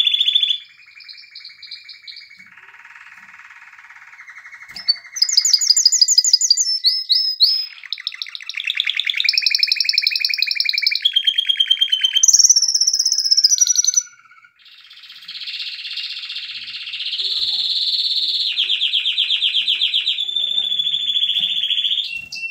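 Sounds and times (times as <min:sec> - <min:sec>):
canary singing trills: 0:00.0 - 0:22.4.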